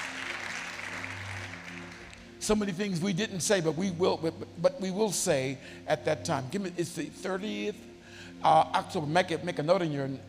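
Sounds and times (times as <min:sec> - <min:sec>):
audience clapping hands: 0:00.0 - 0:02.4
speech: 0:02.4 - 0:10.2.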